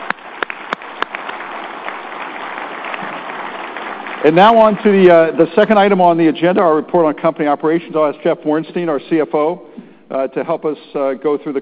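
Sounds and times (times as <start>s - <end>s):
audience applause: 0.0s - 5.8s
speech: 4.2s - 11.6s.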